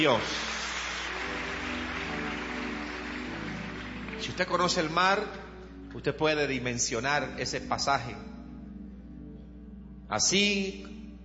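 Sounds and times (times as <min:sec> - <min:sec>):
speech: 0:00.0 - 0:00.5, 0:04.2 - 0:08.3, 0:10.1 - 0:11.0
audience applauding: 0:00.0 - 0:05.1.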